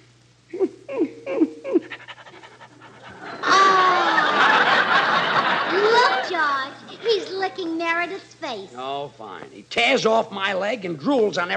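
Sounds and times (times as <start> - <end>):
laughter: 1.3 - 7.4
St. Bernard dog panting: 1.9 - 3.3
speech: 9.7 - 11.5.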